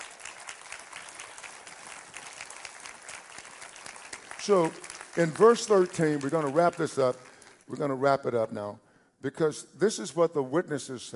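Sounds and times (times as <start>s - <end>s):
audience hand clapping: 0.0s - 7.9s
speech: 4.5s - 11.1s.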